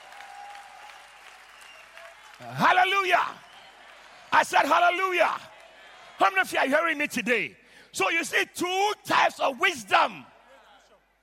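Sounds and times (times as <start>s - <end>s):
people clapping hands: 0.0s - 6.1s
speech: 2.4s - 3.4s, 4.3s - 5.5s, 6.2s - 10.3s.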